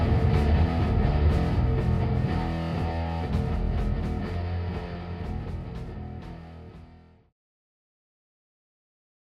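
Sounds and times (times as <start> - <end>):
drum: 0.0 - 7.0.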